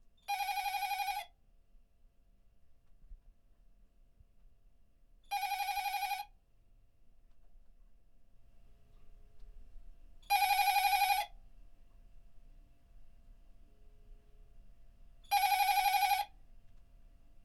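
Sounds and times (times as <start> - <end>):
old-style phone ringing: 0.3 - 1.3, 5.3 - 6.3, 10.3 - 11.3, 15.3 - 16.4.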